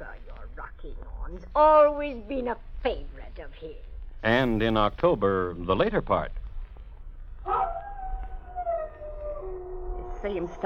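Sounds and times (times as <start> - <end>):
speech: 0.8 - 6.4, 10.2 - 10.6
dog howling: 7.4 - 10.6.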